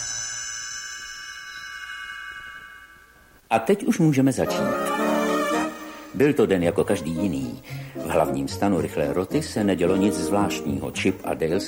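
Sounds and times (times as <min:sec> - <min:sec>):
small bell ringing as page-turn signal: 0:00.0 - 0:03.4
speech: 0:03.5 - 0:04.9, 0:06.2 - 0:11.6.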